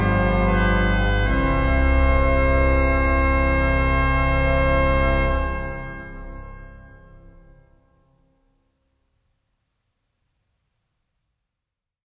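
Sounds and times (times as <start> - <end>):
tuba melody: 0.0 - 7.8.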